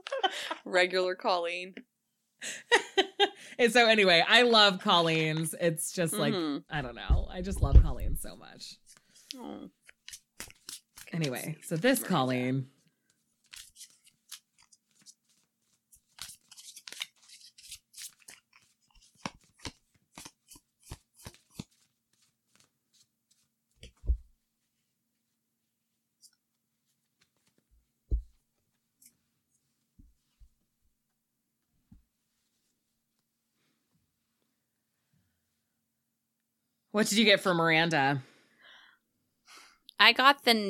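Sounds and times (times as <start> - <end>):
speech: 0.3 - 9.8, 11.1 - 12.8, 37.0 - 38.3, 40.0 - 40.6
tarot cards being shuffled and drawn: 8.8 - 12.0, 13.0 - 24.3.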